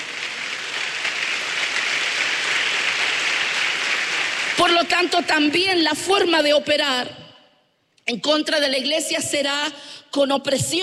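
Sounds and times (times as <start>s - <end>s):
audience applause: 0.0s - 5.5s
speech: 4.6s - 7.2s, 8.1s - 10.8s.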